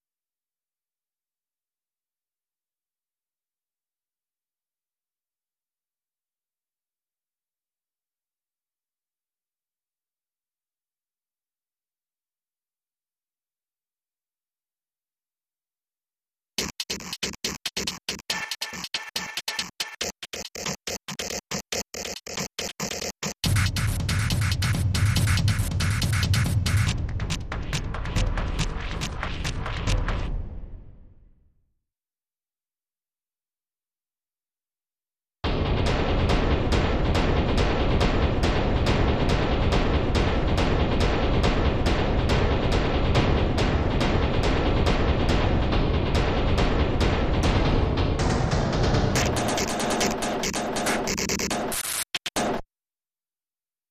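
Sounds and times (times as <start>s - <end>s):
glitch drum kit: 16.6s - 30.8s, 35.4s - 52.6s.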